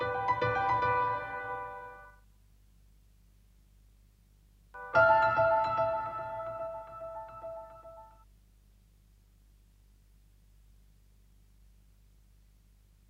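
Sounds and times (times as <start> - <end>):
piano: 0.0 - 2.2, 4.8 - 8.2.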